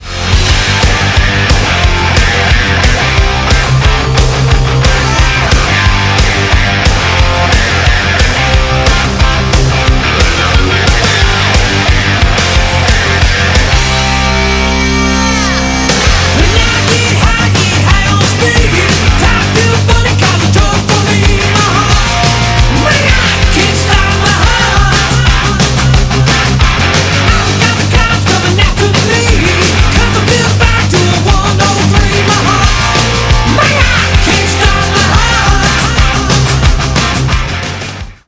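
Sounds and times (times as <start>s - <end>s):
disco music: 0.0s - 38.2s.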